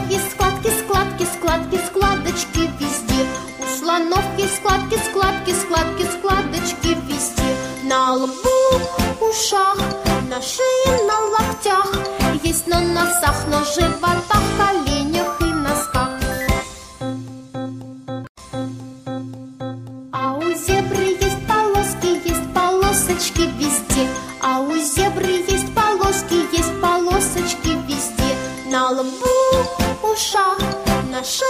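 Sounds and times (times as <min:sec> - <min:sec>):
children's songs: 0:00.0 - 0:31.4.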